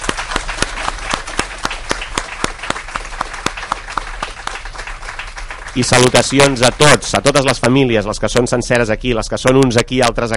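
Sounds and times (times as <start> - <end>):
audience applause: 0.0 - 7.7
speech: 5.8 - 10.3.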